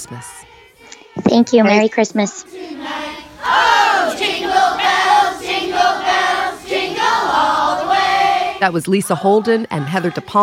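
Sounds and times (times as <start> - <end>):
speech: 0.0 - 0.5, 1.3 - 4.8, 8.6 - 10.4
group of people singing a song in a backyard: 0.0 - 10.4.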